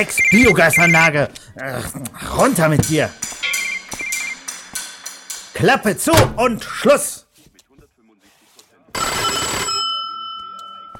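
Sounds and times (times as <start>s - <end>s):
speech: 0.0s - 3.4s, 5.6s - 7.2s
doorbell ringing: 9.0s - 10.9s.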